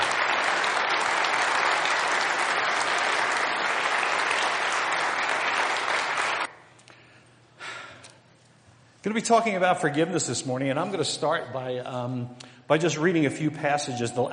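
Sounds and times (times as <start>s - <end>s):
audience applause: 0.0s - 6.5s
speech: 9.0s - 14.3s.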